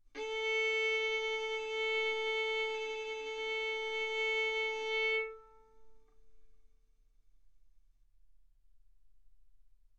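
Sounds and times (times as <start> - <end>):
violin arco on A string: 0.0 - 5.8.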